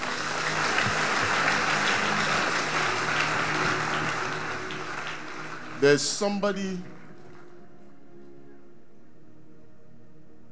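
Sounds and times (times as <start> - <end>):
audience giving a loud hand clap: 0.0 - 7.5
speech: 5.8 - 6.9.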